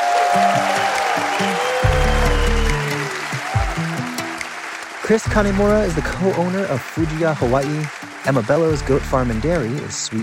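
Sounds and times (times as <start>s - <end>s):
audience applause: 0.0s - 10.2s
speech: 0.4s - 1.8s, 5.1s - 10.2s.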